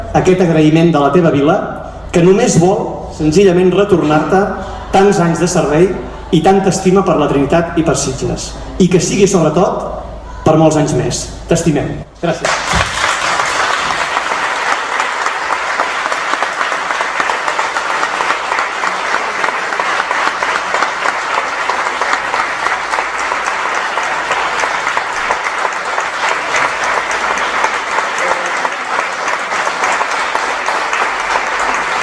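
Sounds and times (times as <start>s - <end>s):
speech: 0.1s - 12.6s
sustained crowd applause: 12.4s - 32.0s.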